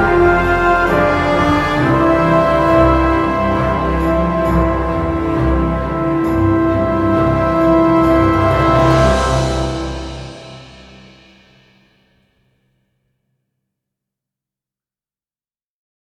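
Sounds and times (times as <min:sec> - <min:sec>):
orchestral theme: 0:00.0 - 0:12.0.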